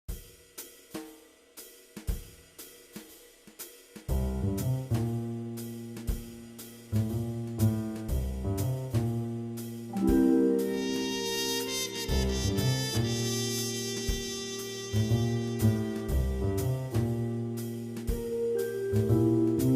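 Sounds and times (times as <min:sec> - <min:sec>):
jazz music: 0:04.1 - 0:19.7.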